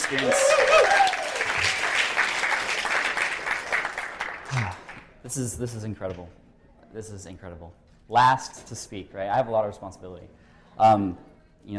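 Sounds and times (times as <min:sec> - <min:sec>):
audience applause: 0:00.0 - 0:05.0
speech: 0:00.1 - 0:01.8, 0:05.3 - 0:11.7.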